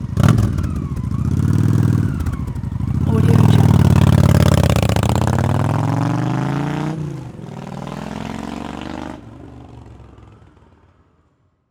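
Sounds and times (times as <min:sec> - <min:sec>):
Honda Shadow motorcycle revving and taking off: 0:00.0 - 0:09.3.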